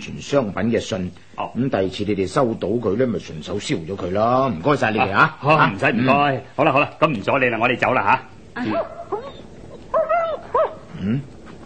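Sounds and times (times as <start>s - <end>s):
speech: 0.0s - 9.0s, 11.0s - 11.3s
dog whining and barking: 8.6s - 10.9s.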